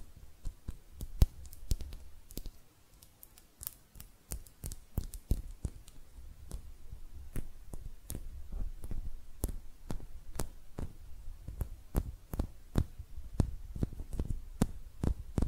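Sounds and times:
hand sounds: 0:00.0 - 0:15.4.

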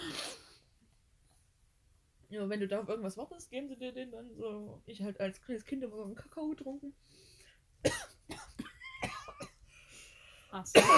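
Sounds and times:
speech: 0:02.3 - 0:08.0, 0:10.5 - 0:10.9
coughing fit after inhaling a piece of döner meat: 0:07.8 - 0:09.6, 0:10.7 - 0:10.9.

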